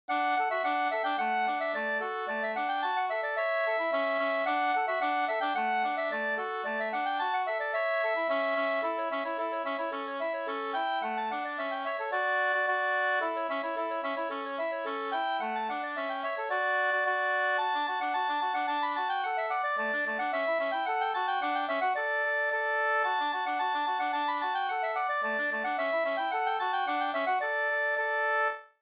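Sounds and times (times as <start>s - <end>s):
Swedish folk tune: 0.1s - 28.6s.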